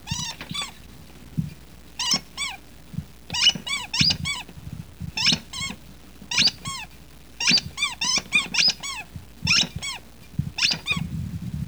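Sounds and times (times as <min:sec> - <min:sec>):
squeak: 0:00.0 - 0:00.8, 0:02.0 - 0:02.6, 0:03.3 - 0:04.5, 0:05.2 - 0:11.1.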